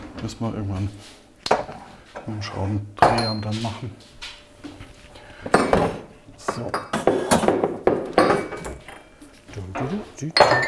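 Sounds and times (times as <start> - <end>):
speech: 0.2 - 1.7, 2.3 - 4.3, 6.6 - 7.0, 9.8 - 10.6
glasses and dishes handled clearing kitchen shelf: 3.0 - 4.8, 5.4 - 10.6.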